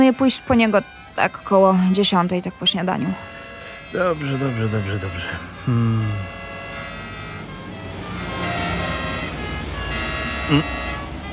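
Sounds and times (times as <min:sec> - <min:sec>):
speech: 0:00.0 - 0:03.3, 0:03.9 - 0:06.4, 0:10.5 - 0:10.8
ambulance siren wailing: 0:00.0 - 0:11.3
low voice: 0:04.0 - 0:06.3, 0:10.5 - 0:10.7.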